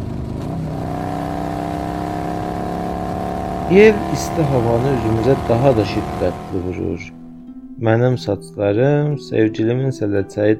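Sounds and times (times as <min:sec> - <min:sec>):
car engine revving as the driver accelerates on a hot day: 0:00.0 - 0:07.4
speech: 0:03.7 - 0:07.2, 0:07.8 - 0:10.5.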